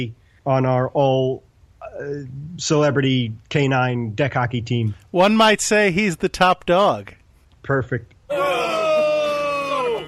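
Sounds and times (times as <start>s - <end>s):
speech: 0.0s - 8.4s
crowd groaning: 8.3s - 10.0s.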